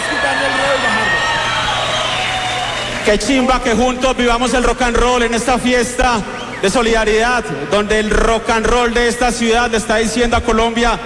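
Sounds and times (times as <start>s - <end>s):
crowd applauding and cheering: 0.0s - 3.8s
speech: 3.1s - 11.0s.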